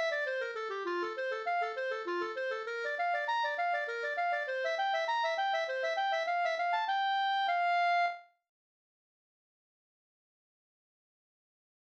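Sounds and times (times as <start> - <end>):
slangpolska folk dance tune: 0.0 - 8.2.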